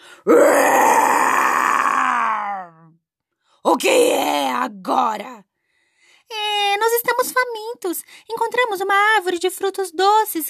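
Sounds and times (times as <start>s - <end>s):
speech: 0.2s - 0.5s, 3.8s - 5.4s, 7.2s - 10.4s
lion roar voiced by a person: 0.3s - 2.8s.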